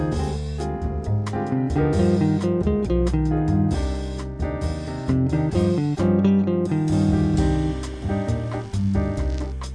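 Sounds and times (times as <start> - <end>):
jazz bossa nova tune: 0.0 - 9.7.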